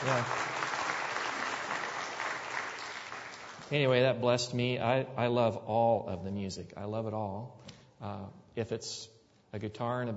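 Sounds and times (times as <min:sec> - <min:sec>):
audience clapping: 0:00.0 - 0:03.9
speech: 0:00.1 - 0:00.5, 0:03.7 - 0:10.1.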